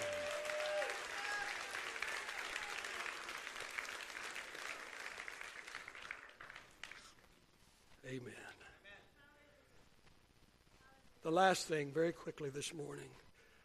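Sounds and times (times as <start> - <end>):
crowd applause: 0.0 - 7.2
speech: 8.1 - 8.6, 11.2 - 13.2.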